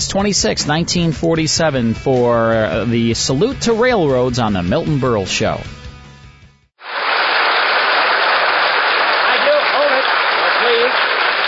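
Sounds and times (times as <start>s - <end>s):
speech: 0.0s - 5.8s
loud dense audience applause: 6.8s - 11.4s.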